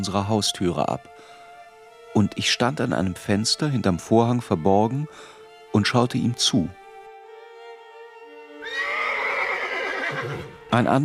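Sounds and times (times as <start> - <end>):
speech: 0.0 - 1.4, 2.2 - 6.8, 10.2 - 11.0
fallen bleeding horse harnessed to a farm cart whinnying and snorting: 8.6 - 10.6.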